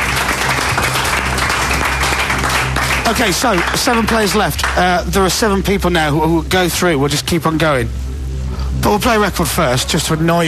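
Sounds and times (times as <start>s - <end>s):
game-show audience applause: 0.0s - 4.8s
speech: 3.1s - 8.0s, 8.8s - 10.4s.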